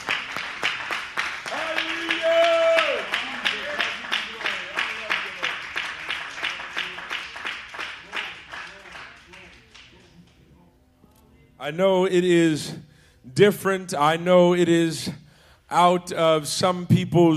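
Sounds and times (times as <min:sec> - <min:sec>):
people calling out and cheering: 0:00.0 - 0:09.5
audience clapping in steady rhythm: 0:00.0 - 0:10.2
speech: 0:11.7 - 0:15.1, 0:15.7 - 0:17.3.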